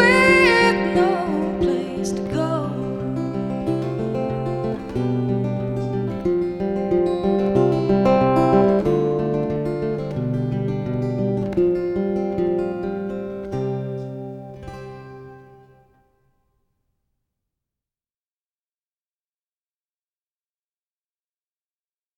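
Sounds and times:
acoustic music: 0.0s - 16.1s.

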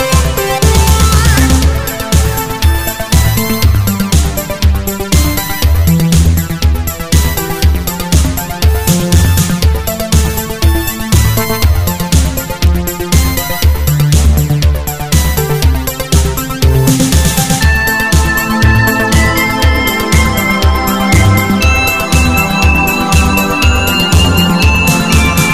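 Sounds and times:
space synth: 0.0s - 25.5s.

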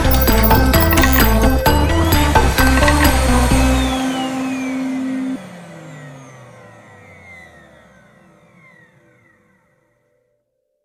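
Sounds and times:
drums played on appliances: 0.0s - 5.5s.

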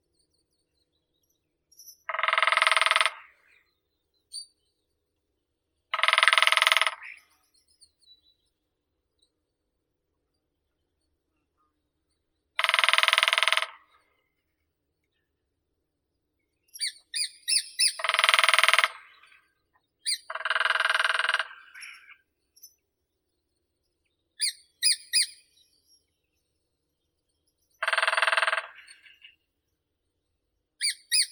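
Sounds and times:
lesser spotted woodpecker Dendrocopos minor: 1.8s - 3.4s, 5.9s - 7.9s, 12.6s - 14.0s, 16.7s - 22.8s, 24.4s - 25.9s, 27.8s - 29.4s, 30.8s - 31.3s.

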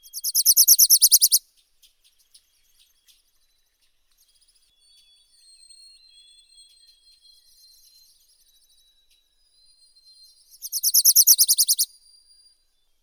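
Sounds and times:
Wilson's warbler Wilsonia pusilla singing: 0.2s - 1.4s, 10.6s - 11.9s.

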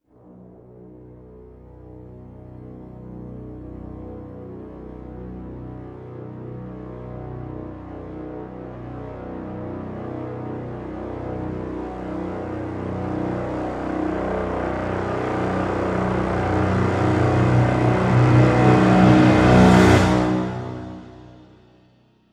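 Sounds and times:
low B brass crescendo swell: 0.2s - 22.0s.

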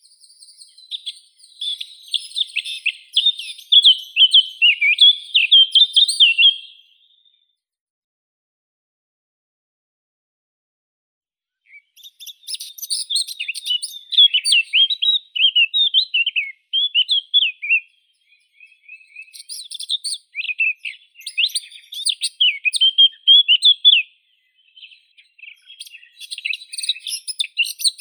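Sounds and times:
Eurasian blackcap Sylvia atricapilla singing: 0.0s - 7.2s, 11.7s - 27.9s.

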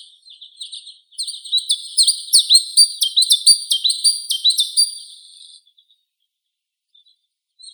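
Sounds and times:
chiffchaff Phylloscopus collybita singing: 1.6s - 5.3s.

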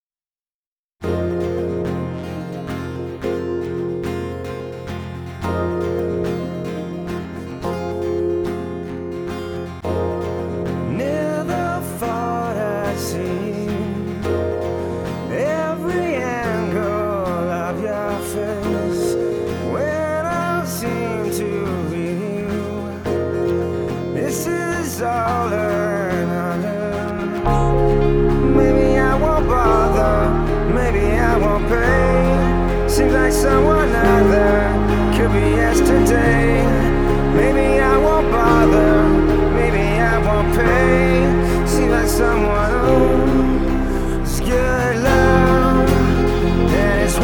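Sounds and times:
acoustic music: 1.0s - 47.2s.

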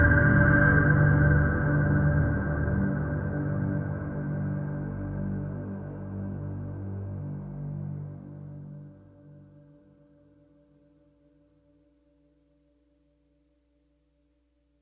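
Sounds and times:
drone: 0.0s - 9.0s.

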